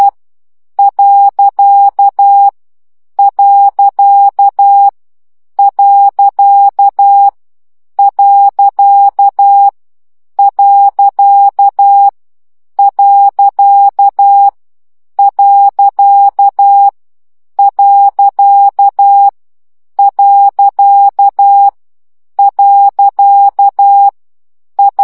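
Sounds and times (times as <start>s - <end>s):
morse code dots practice at 10 baud: 0.8s - 2.5s, 3.2s - 4.9s, 5.6s - 7.3s, 8.0s - 9.7s, 10.4s - 12.1s, 12.8s - 14.5s, 15.2s - 16.9s, 17.6s - 19.3s, 20.0s - 21.7s, 22.4s - 24.2s, 24.8s - 25.0s.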